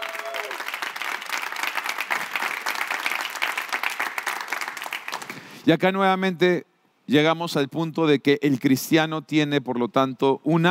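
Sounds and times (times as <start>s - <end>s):
audience applauding: 0.0s - 5.5s
speech: 5.6s - 10.7s.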